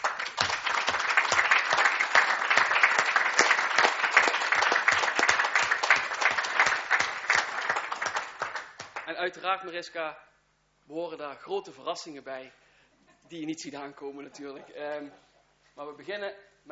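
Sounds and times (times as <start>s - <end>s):
audience applause: 0.0s - 9.1s
speech: 9.2s - 10.3s, 10.9s - 12.6s, 13.3s - 16.5s.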